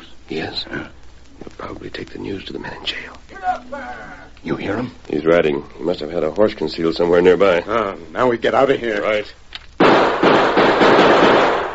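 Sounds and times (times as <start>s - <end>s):
speech: 0.3s - 9.4s
gunshots fired into a barrel: 9.8s - 11.7s.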